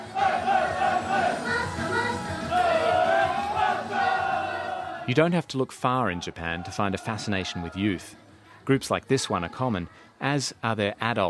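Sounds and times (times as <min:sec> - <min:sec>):
group of grown men shouting and singing along loudly: 0:00.0 - 0:01.6, 0:02.4 - 0:05.2, 0:06.0 - 0:08.2
speech: 0:05.1 - 0:11.2.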